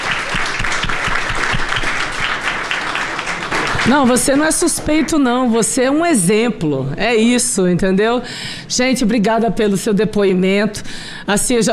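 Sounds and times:
audience applause: 0:00.0 - 0:05.1
speech: 0:03.9 - 0:11.7.

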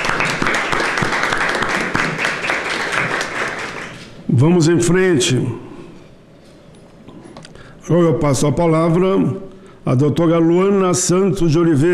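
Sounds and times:
crowd applauding: 0:00.0 - 0:04.2
speech: 0:04.3 - 0:05.7, 0:07.9 - 0:11.9.

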